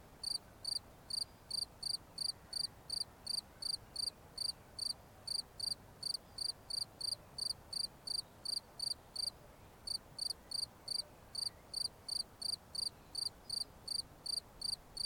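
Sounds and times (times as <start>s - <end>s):
cricket chirping: 0.2s - 9.3s, 9.9s - 15.0s.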